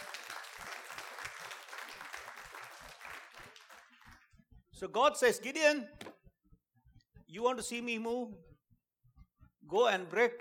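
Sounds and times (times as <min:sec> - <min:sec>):
audience applause: 0:00.0 - 0:04.3
speech: 0:04.8 - 0:06.1, 0:07.3 - 0:08.5, 0:09.7 - 0:10.3.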